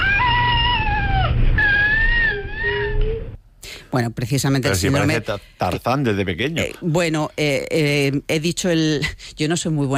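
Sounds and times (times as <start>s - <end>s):
cri-du-chat baby's high-pitched cat-like cry: 0.0s - 3.4s
speech: 3.9s - 9.9s.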